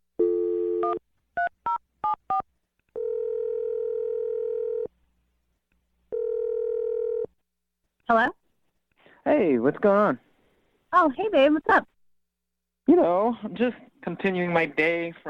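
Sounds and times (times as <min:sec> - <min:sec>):
telephone dial tone: 0:00.2 - 0:01.0, 0:03.0 - 0:04.9, 0:06.1 - 0:07.3
long even telephone ringing tones: 0:03.0 - 0:04.9, 0:06.1 - 0:07.3
speech: 0:08.1 - 0:08.4, 0:09.2 - 0:10.3, 0:10.9 - 0:11.9, 0:12.9 - 0:15.2.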